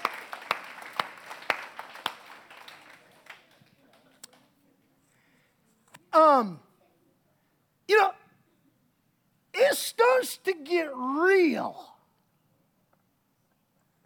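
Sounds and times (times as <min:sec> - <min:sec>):
audience applause: 0:00.0 - 0:04.4
speech: 0:06.2 - 0:06.7, 0:09.9 - 0:11.9.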